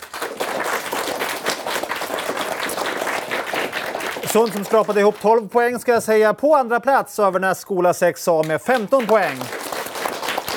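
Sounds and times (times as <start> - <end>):
audience applause: 0.0 - 5.4, 8.4 - 10.5
speech: 4.3 - 9.6.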